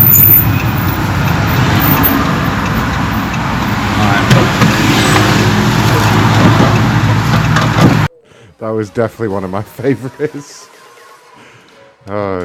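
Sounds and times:
bus approaching: 0:00.0 - 0:08.1
road traffic rumbling: 0:00.0 - 0:08.1
speech: 0:08.8 - 0:10.8, 0:12.0 - 0:12.4.

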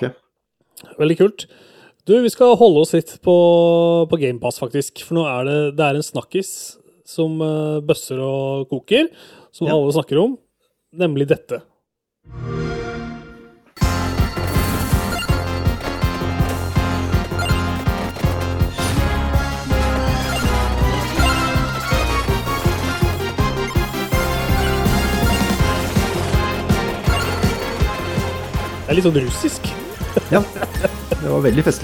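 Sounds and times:
speech: 0:00.0 - 0:00.2, 0:00.8 - 0:12.7, 0:28.9 - 0:31.8
energetic video game soundtrack music: 0:12.3 - 0:31.8
laughter: 0:29.6 - 0:31.8.

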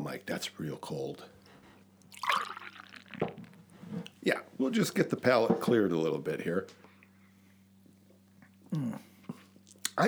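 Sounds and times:
faint steady low hum: 0:00.0 - 0:10.0
speech: 0:00.1 - 0:01.4, 0:04.2 - 0:06.8, 0:08.7 - 0:09.1
beer pouring into a glass: 0:02.0 - 0:03.6.

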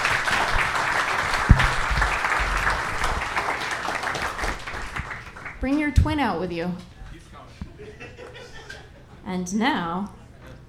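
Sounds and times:
audience applause: 0:00.0 - 0:05.6
speech: 0:05.6 - 0:06.9, 0:09.3 - 0:10.2
laughter: 0:07.6 - 0:09.2.

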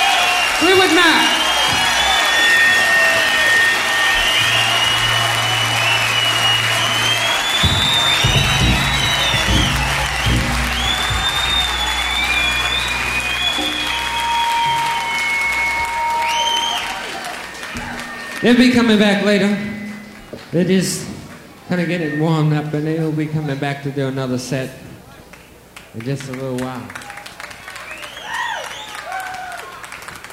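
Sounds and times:
concert crowd cheering and applauding: 0:00.0 - 0:20.5, 0:26.8 - 0:30.3
speech: 0:00.8 - 0:01.4, 0:18.4 - 0:19.7, 0:20.5 - 0:21.1, 0:21.7 - 0:24.9, 0:25.9 - 0:27.0.

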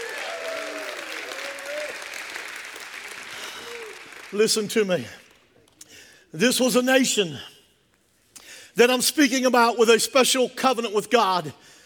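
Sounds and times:
audience applause: 0:00.0 - 0:04.4
speech: 0:04.3 - 0:05.2, 0:06.3 - 0:07.5, 0:08.8 - 0:11.8.

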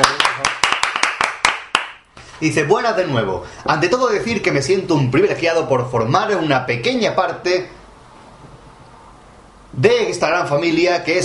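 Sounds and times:
applause, hand clapping: 0:00.0 - 0:02.0
speech: 0:02.4 - 0:07.8, 0:09.8 - 0:11.2.

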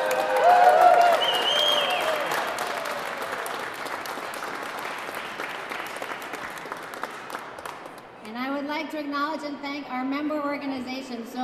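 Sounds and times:
audience applause: 0:00.0 - 0:08.0
speech: 0:09.8 - 0:11.4.

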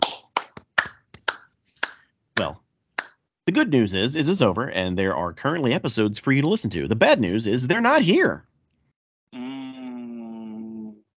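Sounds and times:
golf clap, soft polite clapping: 0:00.0 - 0:03.2
speech: 0:02.4 - 0:02.6, 0:03.5 - 0:08.5.

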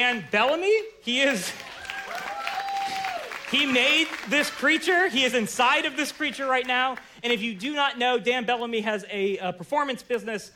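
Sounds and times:
speech: 0:00.0 - 0:02.3, 0:03.5 - 0:10.5
audience applause: 0:01.3 - 0:07.0
whooping cheer: 0:01.6 - 0:03.5.

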